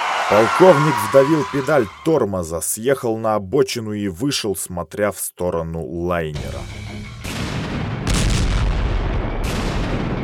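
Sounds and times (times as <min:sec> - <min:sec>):
speech: 0:00.3 - 0:06.8
heavy explosions tearing apart a ship: 0:07.2 - 0:10.2.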